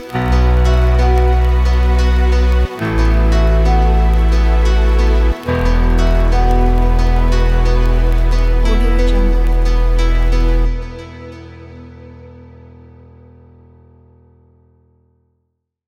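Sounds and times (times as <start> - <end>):
documentary trip hop music: 0.0 - 11.9.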